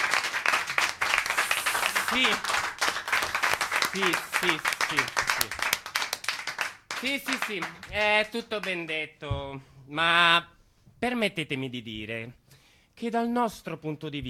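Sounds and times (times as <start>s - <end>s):
audience applause: 0.0s - 8.0s
speech: 2.1s - 2.6s, 3.9s - 5.8s, 7.0s - 12.4s, 13.0s - 14.2s.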